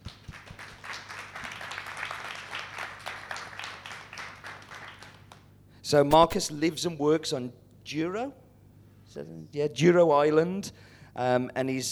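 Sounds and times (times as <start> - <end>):
audience applause: 0.1 - 5.4
speech: 5.9 - 8.4, 9.2 - 11.8.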